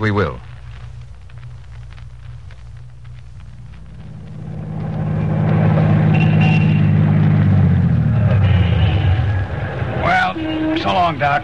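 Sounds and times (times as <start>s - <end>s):
speech: 0.0s - 0.5s, 10.9s - 11.4s
car engine running: 3.4s - 10.0s.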